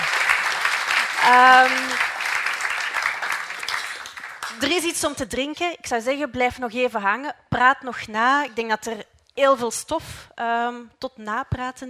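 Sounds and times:
audience applause: 0.0s - 4.6s
speech: 1.3s - 2.0s, 4.6s - 11.8s.

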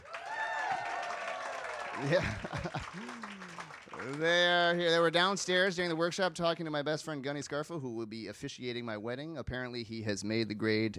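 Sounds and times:
round of applause: 0.0s - 5.8s
laughter: 1.8s - 4.6s
speech: 2.0s - 10.9s.

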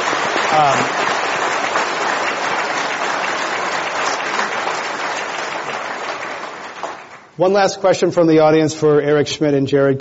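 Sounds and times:
audience applause: 0.0s - 7.4s
speech: 0.5s - 1.1s, 7.4s - 9.9s.

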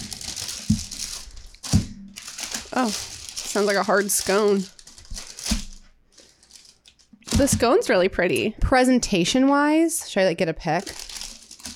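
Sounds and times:
paper bag crinkling as pastries are unpacked: 0.0s - 7.7s, 10.7s - 11.7s
speech: 2.8s - 4.8s, 7.4s - 11.0s.

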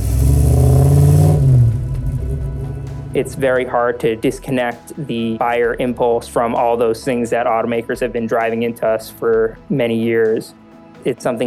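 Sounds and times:
V8 sports car engine revving: 0.0s - 4.4s
speech: 3.2s - 11.4s.

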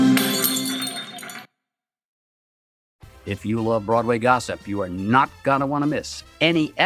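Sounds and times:
glasses clinking in a toast: 0.2s - 1.5s
speech: 3.3s - 6.8s.

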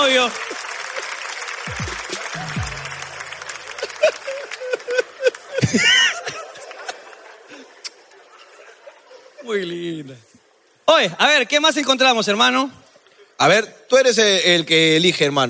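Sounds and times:
audience applause: 0.0s - 7.8s
speech: 0.2s - 0.5s, 5.7s - 5.9s, 9.5s - 10.3s, 10.9s - 12.8s, 13.4s - 15.4s
laughter: 3.7s - 9.5s.

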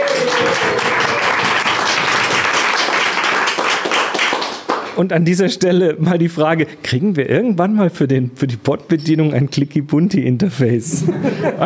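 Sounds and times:
crowd applause: 0.0s - 4.9s
speech: 5.0s - 11.6s
laughter: 10.9s - 11.6s.

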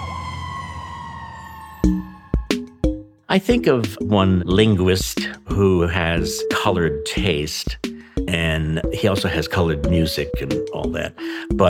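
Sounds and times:
fire truck siren: 0.0s - 3.0s
speech: 3.3s - 11.6s.

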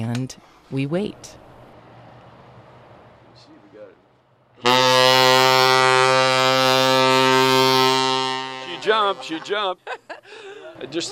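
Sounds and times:
speech: 0.2s - 1.4s, 9.1s - 11.1s
ship's whistle blast: 4.6s - 9.4s
laughter: 8.4s - 11.1s.

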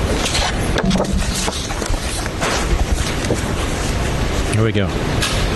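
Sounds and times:
paper rustling and shuffling: 0.1s - 3.9s
speech: 4.6s - 5.5s.

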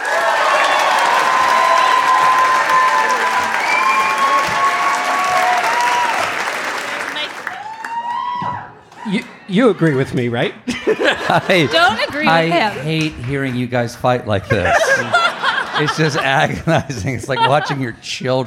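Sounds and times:
show audience applause and cheering welcoming guest Stephen Colbert: 0.0s - 10.5s, 11.2s - 17.9s
laughter: 9.0s - 18.4s
speech: 9.5s - 15.2s, 15.8s - 18.4s.

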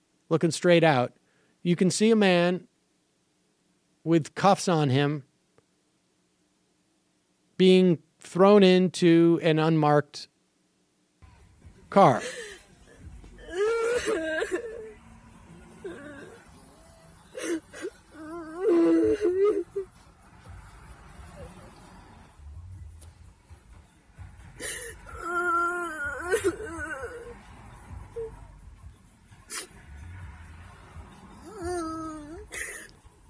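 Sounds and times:
speech: 0.3s - 2.7s, 4.0s - 5.3s, 7.6s - 10.3s, 11.9s - 12.5s
13-year-old girl crying: 12.2s - 15.0s, 15.8s - 19.9s, 24.6s - 27.4s, 31.4s - 32.9s.

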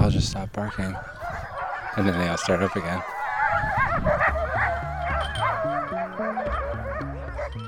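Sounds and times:
speech: 0.2s - 1.2s, 1.9s - 7.6s
dogs barking and whining: 0.6s - 7.6s
low droning tone: 3.8s - 7.6s.

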